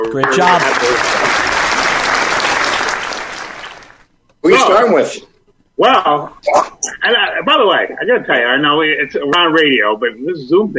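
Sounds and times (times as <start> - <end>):
audience applause for a food-distribution group: 0.0 - 4.1
speech: 0.1 - 1.4, 4.4 - 10.7.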